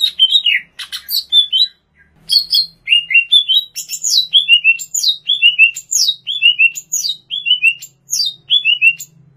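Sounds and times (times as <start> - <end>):
greater green leafbird singing: 0.0 - 9.2.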